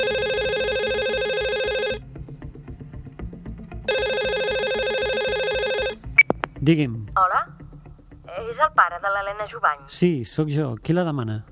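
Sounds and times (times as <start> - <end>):
telephone ringing: 0.0 - 2.0, 3.9 - 6.0
speech: 6.6 - 7.4, 8.4 - 11.5.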